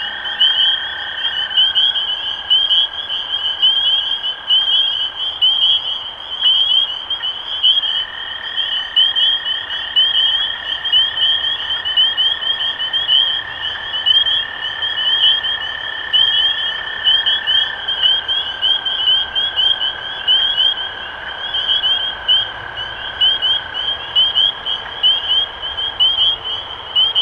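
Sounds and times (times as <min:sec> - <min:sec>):
spring peepers peeping in chorus: 0:00.0 - 0:27.2.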